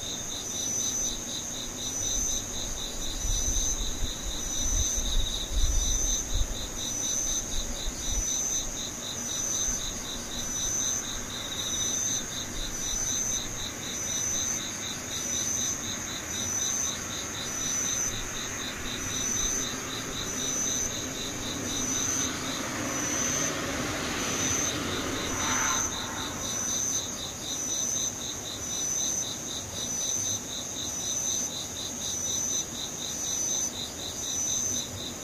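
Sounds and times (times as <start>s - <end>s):
insects trilling: 0.0s - 35.2s
brief whooshing swell: 24.0s - 27.4s
low rumble: 24.7s - 27.2s.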